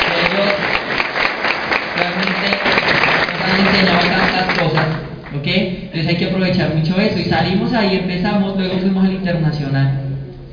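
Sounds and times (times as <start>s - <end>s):
audience applause: 0.0s - 5.4s
speech: 5.5s - 10.0s.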